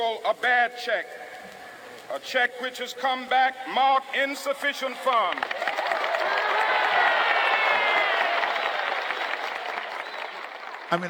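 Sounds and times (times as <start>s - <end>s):
speech: 0.0s - 1.3s, 2.1s - 5.8s
crowd cheering and applauding Martin Luther King Jr.'s speech: 4.8s - 11.0s.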